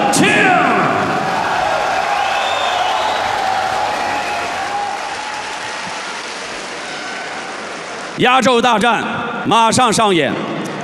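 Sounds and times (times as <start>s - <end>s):
audience applause: 0.8s - 8.2s
speech: 8.2s - 10.5s.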